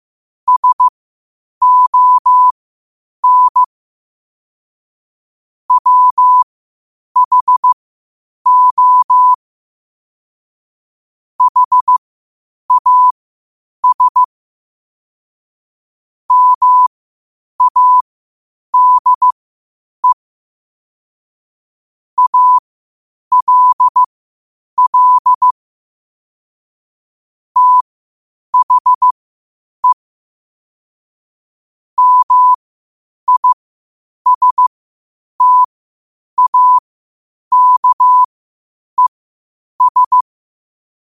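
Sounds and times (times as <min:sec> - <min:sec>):
morse code at 5 wpm: 0:00.5 - 0:00.9, 0:01.6 - 0:02.5, 0:03.2 - 0:03.7, 0:05.7 - 0:06.4, 0:07.2 - 0:07.8, 0:08.5 - 0:09.4, 0:11.4 - 0:12.0, 0:12.7 - 0:13.2, 0:13.8 - 0:14.3, 0:16.3 - 0:16.9, 0:17.6 - 0:18.0, 0:18.8 - 0:19.4, 0:22.2 - 0:22.6, 0:23.3 - 0:24.1, 0:24.8 - 0:25.5, 0:27.6 - 0:27.8, 0:28.6 - 0:29.2, 0:32.0 - 0:32.6, 0:33.3 - 0:33.6, 0:34.3 - 0:34.7, 0:35.4 - 0:35.7, 0:36.4 - 0:36.8, 0:37.5 - 0:38.3, 0:39.8 - 0:40.2.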